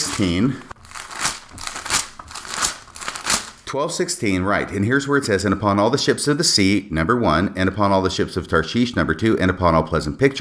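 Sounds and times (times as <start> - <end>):
scripture book pages being handled and flipped: 0.0 - 3.7
speech: 0.2 - 0.7, 3.7 - 10.3.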